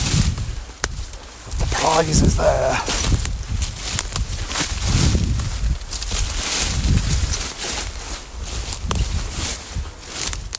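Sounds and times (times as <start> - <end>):
rustling and scraping of bramble stems and leaves: 0.0 - 10.5
footfalls through waist-high brambles: 1.0 - 10.4
speech: 2.0 - 3.2.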